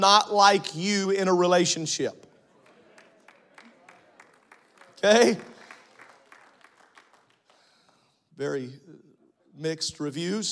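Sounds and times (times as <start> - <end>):
speech: 0.0 - 2.2, 5.0 - 5.5, 8.4 - 9.0, 9.6 - 10.4
soft crowd noise: 2.2 - 6.9
sparse scattered applause: 2.4 - 8.2.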